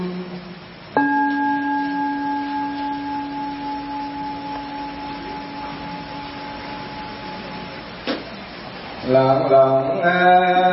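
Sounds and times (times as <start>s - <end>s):
mindfulness bell ringing: 1.0s - 7.8s
speech: 9.2s - 10.6s.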